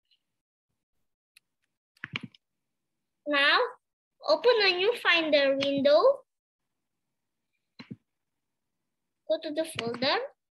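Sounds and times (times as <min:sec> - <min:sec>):
computer mouse right-clicks: 0:01.4 - 0:02.4, 0:05.6 - 0:05.9, 0:07.8 - 0:08.1, 0:09.7 - 0:10.1
speech: 0:03.3 - 0:06.2, 0:09.3 - 0:10.3.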